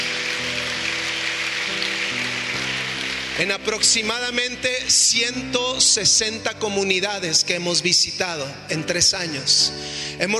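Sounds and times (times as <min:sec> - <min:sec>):
sustained music chords: 0:00.0 - 0:04.2
crowd clapping: 0:00.0 - 0:04.7
speech: 0:03.4 - 0:10.3.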